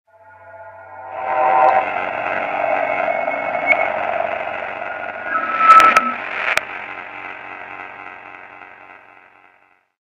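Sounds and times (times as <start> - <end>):
radar sound: 0.1 - 7.6.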